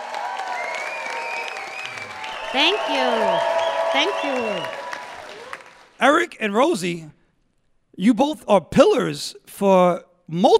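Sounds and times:
audience applause: 0.0s - 6.1s
speech: 2.5s - 4.8s, 6.0s - 7.2s, 8.0s - 10.5s.

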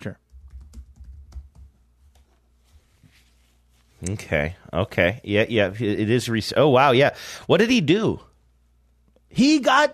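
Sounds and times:
speech: 0.0s - 0.2s, 4.0s - 8.3s, 9.3s - 9.9s
typing a web search on a computer keyboard: 0.2s - 2.2s.

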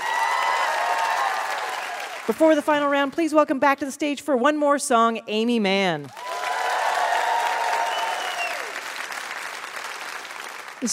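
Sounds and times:
game show audience applause welcoming a guest: 0.0s - 2.4s, 6.1s - 10.9s
speech: 2.3s - 6.2s.

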